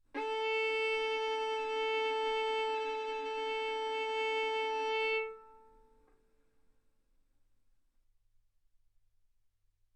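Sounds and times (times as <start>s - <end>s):
violin arco on A string: 0.1s - 5.9s.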